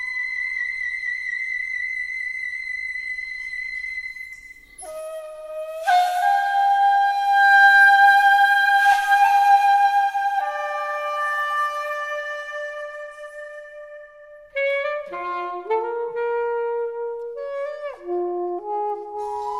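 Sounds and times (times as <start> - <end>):
saxophone playing long held notes: 4.8 - 19.5.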